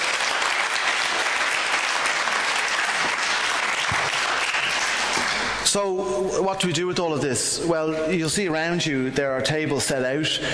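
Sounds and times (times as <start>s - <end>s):
audience applauding: 0.0s - 5.7s
speech: 5.7s - 10.5s.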